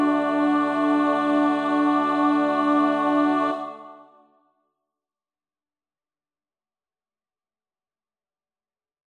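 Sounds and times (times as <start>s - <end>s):
bass choir part practice: 0.0s - 4.2s.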